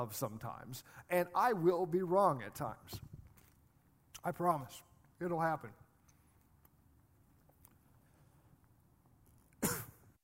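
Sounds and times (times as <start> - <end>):
speech: 0.0 - 3.1, 4.2 - 5.8
person coughing after choking on a cough drop: 9.6 - 10.2.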